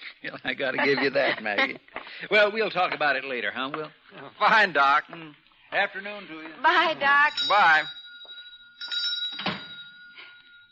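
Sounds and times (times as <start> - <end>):
speech: 0.2 - 8.0
telephone ringing: 7.0 - 10.7.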